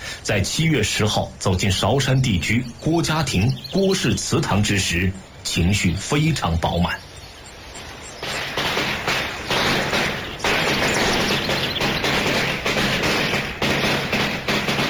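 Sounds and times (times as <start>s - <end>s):
speech: 0.3s - 7.1s
string of firecrackers exploding: 8.2s - 14.8s.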